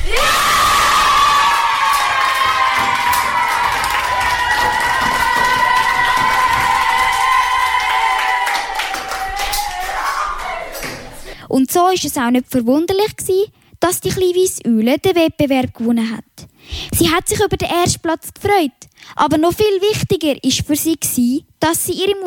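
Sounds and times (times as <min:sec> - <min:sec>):
audience whoops and shouts: 0:00.0 - 0:11.0
large audience clapping: 0:00.1 - 0:11.2
speech: 0:11.9 - 0:22.2.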